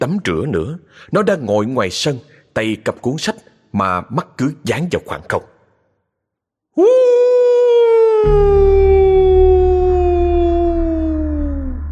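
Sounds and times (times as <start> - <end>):
speech: 0.0 - 5.5, 6.8 - 7.2, 8.2 - 9.0
long human howl: 6.8 - 11.9
low rumbling drone: 8.3 - 11.9.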